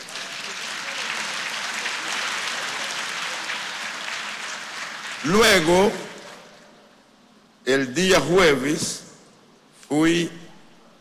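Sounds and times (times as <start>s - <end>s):
audience applauding: 0.0s - 6.8s
speech: 5.2s - 6.0s, 7.7s - 9.0s, 9.9s - 10.4s.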